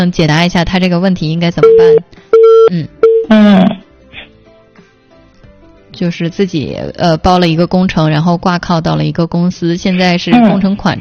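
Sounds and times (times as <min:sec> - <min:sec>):
speech: 0:00.0 - 0:03.9, 0:06.0 - 0:11.0
telephone line tone after a dropped call: 0:01.6 - 0:03.8.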